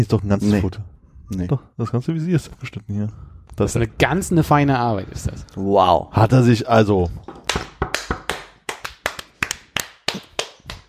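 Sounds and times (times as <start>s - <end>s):
speech: 0.0s - 7.4s
hand clapping: 7.3s - 10.8s.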